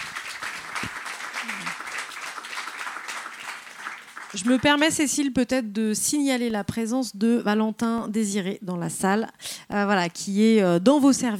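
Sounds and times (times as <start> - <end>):
audience applause: 0.0 - 4.8
speech: 4.3 - 11.3.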